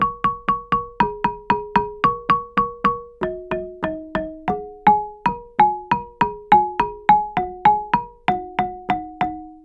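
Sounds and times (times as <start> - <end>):
gambang xylophone: 0.0 - 9.6.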